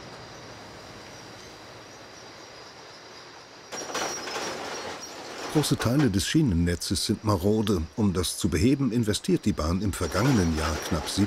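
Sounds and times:
Mammut track renewal machine lifting railway sleepers: 3.7s - 7.8s, 9.6s - 11.2s
speech: 5.5s - 11.2s.

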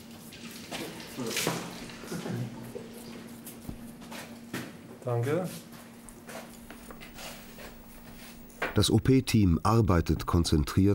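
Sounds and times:
tap water running into a bucket: 0.0s - 3.3s
faint constant hum: 0.0s - 10.9s
speech: 1.2s - 1.7s, 5.0s - 5.7s, 8.8s - 10.9s.

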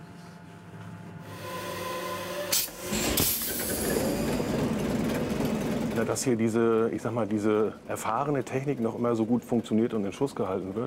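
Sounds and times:
eight-cylinder ship engine running: 1.2s - 10.8s
hissing burst: 1.8s - 5.0s
speech: 6.0s - 10.8s.

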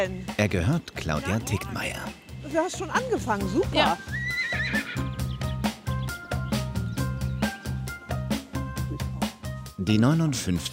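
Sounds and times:
speech: 0.0s - 5.1s, 9.9s - 10.7s
Hanoverian horses neighing at an East Frisian island stud farm: 2.8s - 9.4s.

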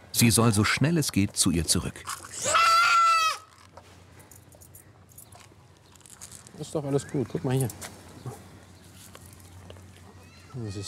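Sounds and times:
speech: 0.2s - 2.4s, 6.6s - 8.4s, 10.6s - 10.8s
goat kid bleating: 2.3s - 3.5s.

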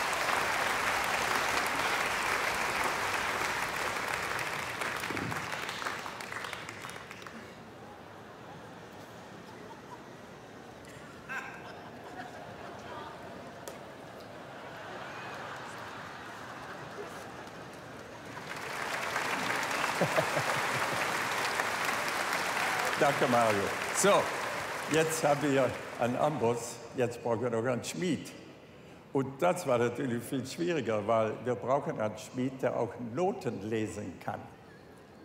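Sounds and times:
audience applause: 0.0s - 7.8s, 14.6s - 26.6s
laughter: 8.5s - 13.6s, 14.3s - 17.9s, 19.3s - 22.0s
speech: 23.0s - 28.4s, 29.2s - 34.6s.

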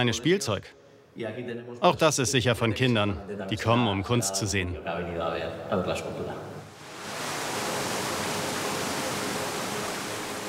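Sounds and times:
speech: 0.0s - 6.6s
pumped water simulating ocean surf of the Basque coast: 6.8s - 10.4s.

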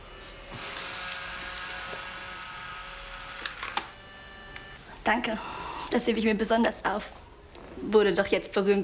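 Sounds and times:
camera shutter clicks during farewell photos: 3.4s - 3.9s
speech: 5.0s - 7.2s, 7.8s - 8.8s.

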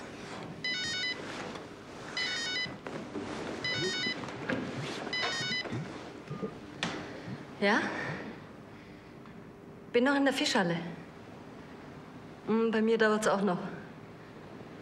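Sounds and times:
telephone ringing: 0.6s - 1.3s, 2.1s - 2.8s, 3.6s - 4.3s, 5.1s - 6.6s
speech: 7.6s - 8.0s, 9.9s - 11.0s, 12.5s - 13.7s.

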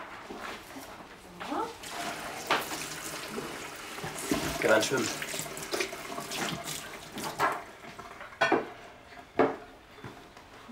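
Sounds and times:
faucet water running while salad is washed in a kitchen: 1.8s - 8.4s
speech: 4.6s - 5.2s.

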